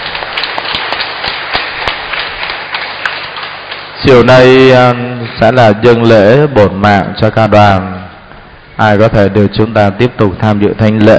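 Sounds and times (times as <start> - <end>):
audience applause: 0.0 - 4.0
speech: 4.0 - 8.0, 8.8 - 11.1.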